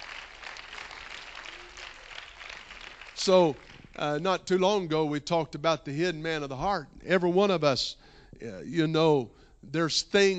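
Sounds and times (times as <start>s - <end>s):
audience clapping: 0.0s - 4.3s
speech: 3.2s - 10.3s.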